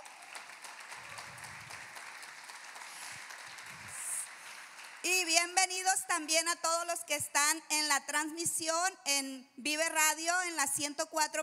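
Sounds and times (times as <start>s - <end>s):
crowd applauding: 0.0s - 5.1s
speech: 5.2s - 11.4s.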